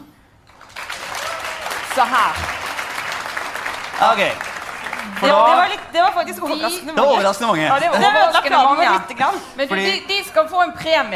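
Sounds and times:
audience clapping: 0.4 - 6.6
speech: 2.0 - 2.6, 4.0 - 11.1.

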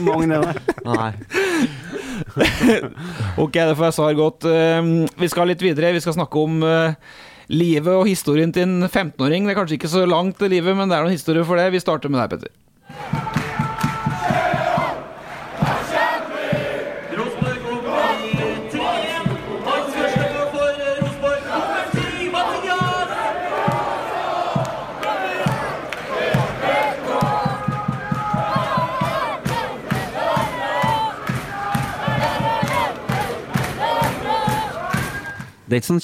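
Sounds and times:
speech: 0.0 - 1.8, 2.4 - 13.3, 35.7 - 36.0
laughter: 0.0 - 3.0
football stand crowd chanting: 12.8 - 35.4
rhythmic clapping or drumming: 12.9 - 35.6.

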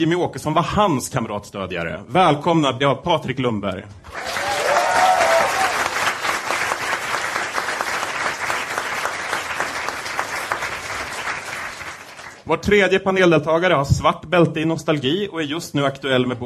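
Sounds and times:
speech: 0.0 - 4.5, 12.5 - 16.4
studio audience applause: 4.1 - 12.5.

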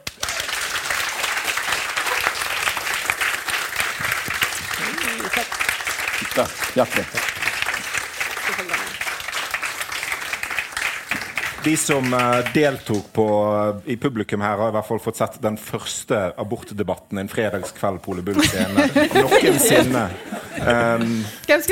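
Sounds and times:
audience applause: 0.0 - 13.2
laughter: 4.7 - 5.6, 18.3 - 21.4
speech: 6.4 - 7.4, 11.6 - 21.7.

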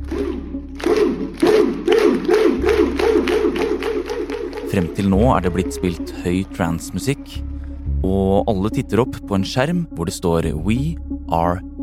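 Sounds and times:
over 100 people shouting in a cinema: 0.9 - 7.0
speech: 4.7 - 11.7.

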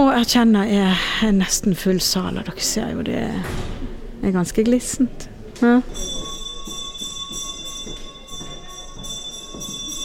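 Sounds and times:
speech: 0.2 - 6.2
theatre bell ringing: 5.9 - 10.0.

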